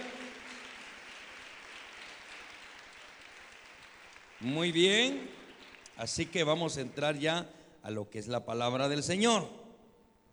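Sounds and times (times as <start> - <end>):
audience applause: 0.0 - 6.6
speech: 4.4 - 5.4, 6.0 - 9.6.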